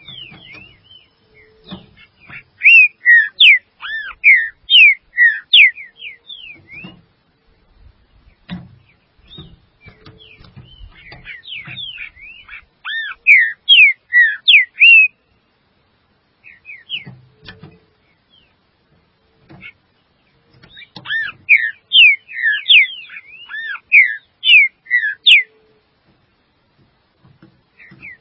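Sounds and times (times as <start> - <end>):
green-winged saltator whistling: 0.0 - 7.0, 9.2 - 15.2, 16.4 - 17.1, 20.7 - 25.6.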